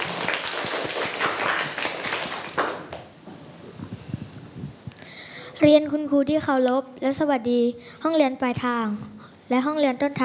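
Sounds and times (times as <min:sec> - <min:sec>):
classroom applause: 0:00.0 - 0:03.1
speech: 0:05.6 - 0:10.2.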